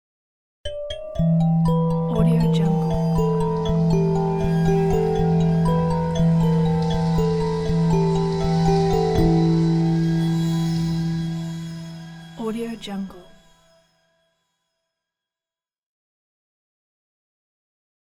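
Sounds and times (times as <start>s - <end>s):
evil lullaby logo: 0.7s - 13.8s.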